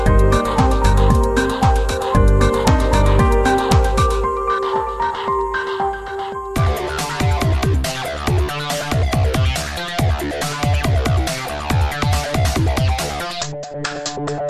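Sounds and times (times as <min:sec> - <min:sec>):
breakbeats: 0:00.0 - 0:14.4.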